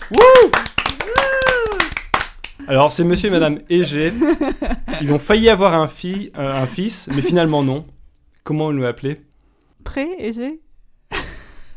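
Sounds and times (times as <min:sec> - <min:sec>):
applause: 0:00.0 - 0:02.6
speech: 0:00.1 - 0:00.5, 0:02.7 - 0:10.6
laughter: 0:02.6 - 0:08.0.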